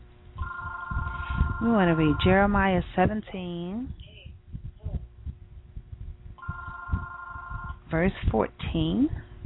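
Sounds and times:
mobile phone ringtone: 0.4s - 2.3s, 6.4s - 7.8s
speech: 1.6s - 4.0s, 7.9s - 9.3s.

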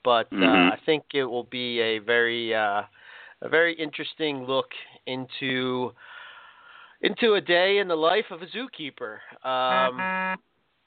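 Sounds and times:
speech: 0.0s - 6.2s, 7.0s - 10.5s
electronic beep: 9.7s - 10.4s.

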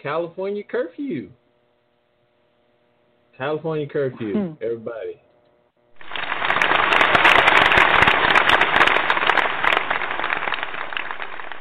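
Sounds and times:
speech: 0.0s - 1.4s, 3.4s - 5.2s
added clapping sound effect: 6.0s - 11.5s.

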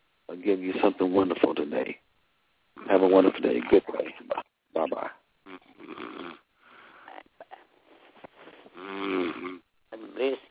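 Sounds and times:
speech: 0.3s - 2.1s, 2.8s - 5.2s
person snoring over a phone line: 5.5s - 6.4s, 8.8s - 9.6s.

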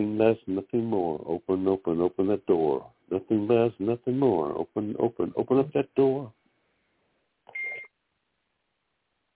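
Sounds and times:
speech: 0.2s - 3.0s, 3.7s - 4.7s, 5.4s - 6.1s
phone text message alert beep: 7.5s - 7.9s.

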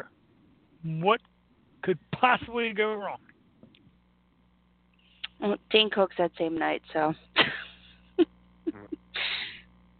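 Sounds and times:
speech: 0.8s - 3.3s, 5.4s - 7.6s
mouth fart noise: 8.7s - 9.2s.

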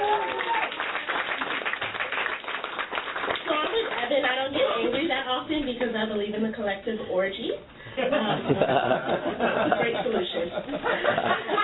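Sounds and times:
audience clapping: 0.0s - 4.4s
speech: 5.4s - 11.6s
laughter: 8.0s - 11.6s.

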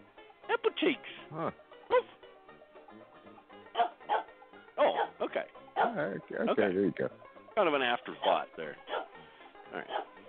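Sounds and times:
speech: 0.7s - 2.1s, 5.3s - 9.0s, 9.7s - 10.2s
dog barking: 1.9s - 2.1s, 3.8s - 5.2s, 5.8s - 6.0s, 8.2s - 9.2s, 9.8s - 10.2s.

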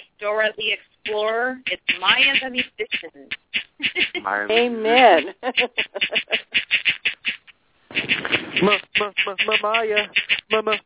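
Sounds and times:
speech: 0.2s - 7.0s, 8.0s - 10.8s
mobile phone text message alert: 0.6s - 5.0s, 5.6s - 10.8s
laughter: 3.8s - 6.6s, 8.2s - 8.9s.

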